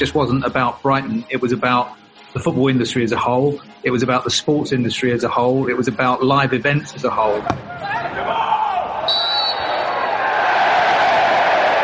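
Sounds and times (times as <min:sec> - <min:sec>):
speech: 0:00.0 - 0:08.5
football crowd roar at Brighton's Amex Stadium during a friendly against Chelsea: 0:07.4 - 0:11.8
high whistling tone: 0:09.0 - 0:10.0.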